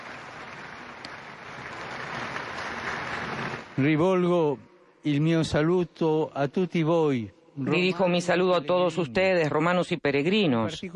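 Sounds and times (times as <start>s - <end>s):
crowd applause: 0.0s - 4.0s
speech: 3.8s - 10.9s.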